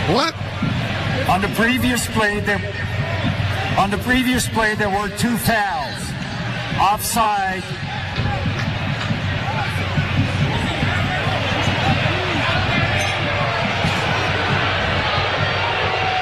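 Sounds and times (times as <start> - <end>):
stadium crowd jeering: 0.0 - 16.2
speech: 0.1 - 0.7, 1.3 - 3.0, 3.8 - 6.0, 6.8 - 7.8
scattered shouts: 7.8 - 16.2.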